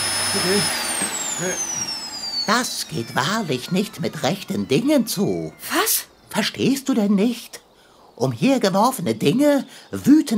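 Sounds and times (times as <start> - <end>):
vacuum cleaner running: 0.0 - 5.9
speech: 0.4 - 0.8, 1.4 - 1.9, 2.5 - 7.6, 8.2 - 10.3.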